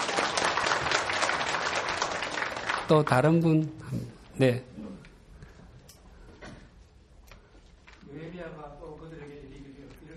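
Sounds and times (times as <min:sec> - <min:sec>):
audience applause of encouragement: 0:00.0 - 0:03.2
speech: 0:02.9 - 0:04.8.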